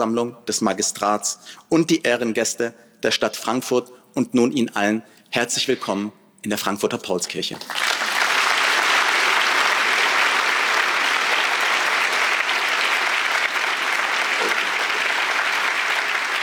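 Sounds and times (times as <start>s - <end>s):
speech: 0.0s - 8.0s
audience applause: 7.6s - 16.4s.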